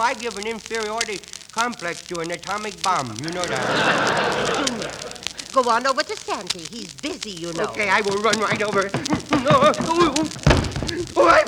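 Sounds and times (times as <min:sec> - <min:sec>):
speech: 0:00.0 - 0:11.4
laughter: 0:02.9 - 0:05.7, 0:07.5 - 0:11.4
person falling down in a Christmas comedy scene: 0:08.4 - 0:11.4.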